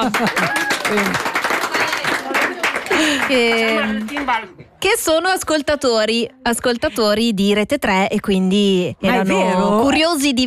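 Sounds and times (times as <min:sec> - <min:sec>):
speech: 0:00.0 - 0:01.3, 0:03.0 - 0:10.4
school class clapping in a studio: 0:00.0 - 0:04.6
voices whooping and cheering: 0:00.3 - 0:01.2.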